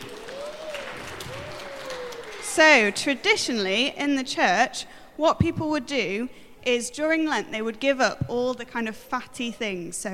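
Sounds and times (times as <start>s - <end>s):
small group clapping: 0.0s - 3.1s
speech: 2.6s - 10.1s.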